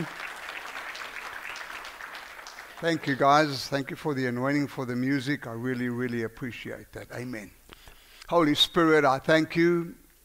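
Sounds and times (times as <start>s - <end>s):
audience clapping for praise team: 0.0s - 3.6s
speech: 2.8s - 7.6s, 8.3s - 10.0s.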